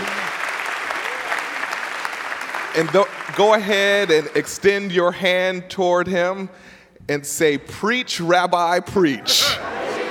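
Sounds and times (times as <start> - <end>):
audience applause: 0.0 - 4.5
speech: 2.8 - 9.7
laughter: 9.2 - 10.0.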